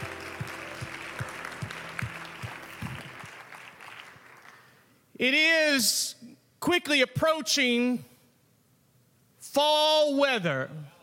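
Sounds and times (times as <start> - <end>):
rhythmic low thumping beat with held musical tones: 0.0 - 3.4
audience hand clap of praise: 0.0 - 5.0
speech: 5.2 - 6.1, 6.7 - 8.1, 9.6 - 10.8.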